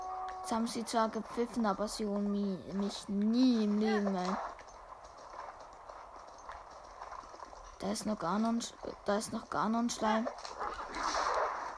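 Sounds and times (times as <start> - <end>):
game hum: 0.0 - 11.7
horse hooves galloping in video game: 0.0 - 11.7
speech: 0.5 - 4.6, 7.8 - 10.8.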